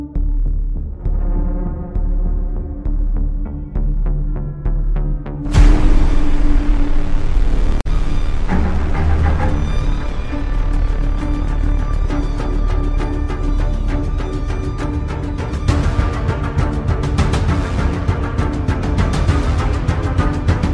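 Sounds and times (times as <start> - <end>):
background music: 0.0 - 20.7.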